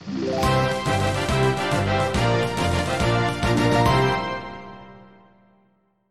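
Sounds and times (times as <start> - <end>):
victory jingle: 0.2 - 5.0.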